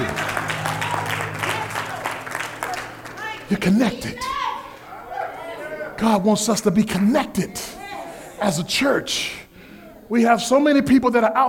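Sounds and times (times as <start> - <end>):
steady low hum: 0.0 - 4.0
church congregation clapping hands in praise: 0.0 - 4.4
speech: 3.5 - 4.4, 6.0 - 7.8, 8.4 - 9.4, 10.1 - 11.4.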